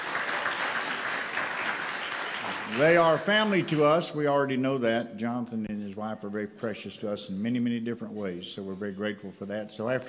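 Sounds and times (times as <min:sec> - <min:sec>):
church congregation applauding a guest during a service: 0:00.0 - 0:04.0
speech: 0:02.7 - 0:10.0.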